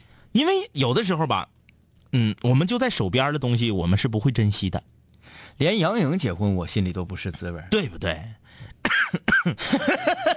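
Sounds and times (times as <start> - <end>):
speech: 0.3 - 10.3
harsh coughing: 8.8 - 10.3.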